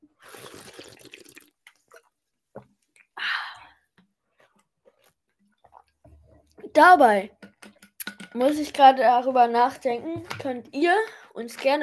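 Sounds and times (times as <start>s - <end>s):
person drinking a beverage: 0.1s - 2.2s, 3.0s - 6.7s
speech: 6.8s - 7.4s, 8.4s - 11.8s.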